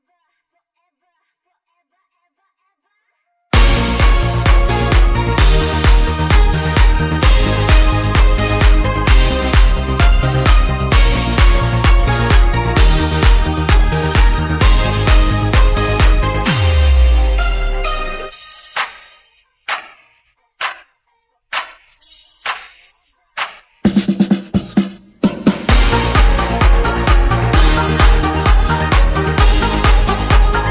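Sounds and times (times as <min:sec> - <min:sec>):
instrumental music: 0:03.5 - 0:20.0, 0:23.8 - 0:30.6.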